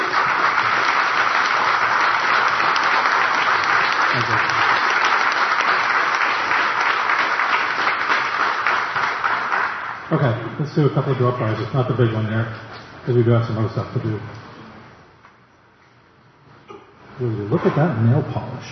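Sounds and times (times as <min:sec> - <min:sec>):
audience applause: 0:00.0 - 0:10.4
speech: 0:10.2 - 0:14.4, 0:17.2 - 0:18.7.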